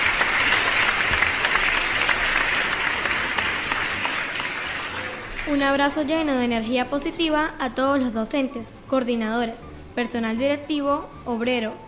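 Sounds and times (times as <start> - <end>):
applause: 0.0 - 5.6
speech: 5.5 - 11.8.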